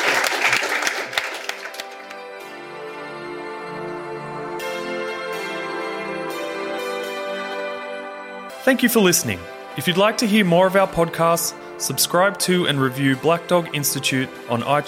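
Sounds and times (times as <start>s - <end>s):
audience applause for the panel: 0.0s - 2.2s
sustained musical tone: 1.3s - 14.8s
speech: 8.7s - 14.8s.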